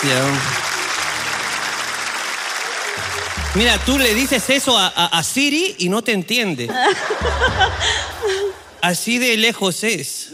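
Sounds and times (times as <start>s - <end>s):
speech: 0.0s - 0.6s, 3.0s - 10.3s
audience applause for a guest from Lircay, Angaraes, Huancavelica: 0.0s - 5.4s
laughter: 6.6s - 8.8s.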